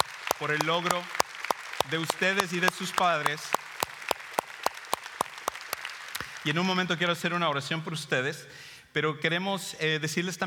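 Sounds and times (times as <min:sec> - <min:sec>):
audience applause: 0:00.0 - 0:06.7
speech: 0:00.4 - 0:01.2, 0:01.8 - 0:03.6, 0:06.4 - 0:10.4.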